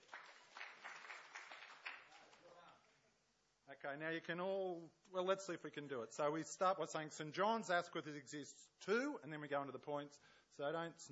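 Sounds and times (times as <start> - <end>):
applause: 0.0 - 2.8
speech: 3.7 - 11.0.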